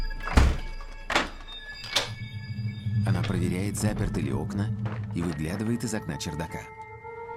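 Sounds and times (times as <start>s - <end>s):
kitchen door being locked: 0.0s - 2.2s
speech: 3.3s - 6.8s.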